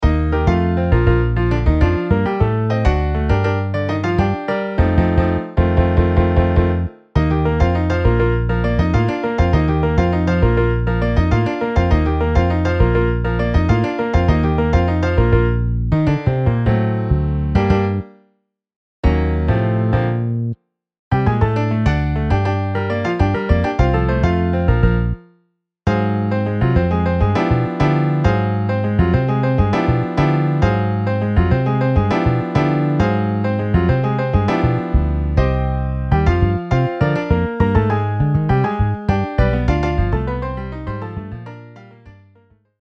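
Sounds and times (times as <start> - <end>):
MIDI piano and bass: 0.0 - 18.2, 19.0 - 42.7.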